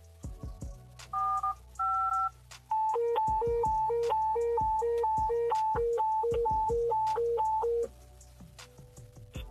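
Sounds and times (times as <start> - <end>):
radio signalling tones sent on key-up: 1.2 - 7.9.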